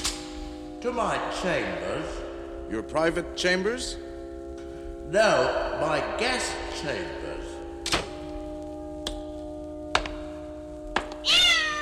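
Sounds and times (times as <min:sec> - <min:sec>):
speech: 0:00.8 - 0:04.1, 0:05.1 - 0:07.4
cat yowling after tail stepped on: 0:11.2 - 0:11.8.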